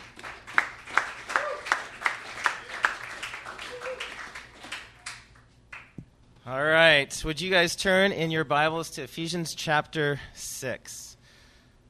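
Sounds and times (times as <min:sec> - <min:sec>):
church audience clapping to welcome a speaker: 0:00.0 - 0:06.0
speech: 0:06.5 - 0:11.0.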